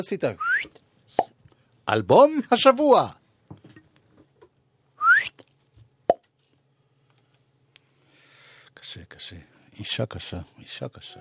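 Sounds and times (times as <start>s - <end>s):
speech: 0.0s - 1.3s, 1.9s - 3.2s, 8.9s - 11.2s
person whistling a rising note: 0.4s - 0.7s, 5.0s - 5.4s.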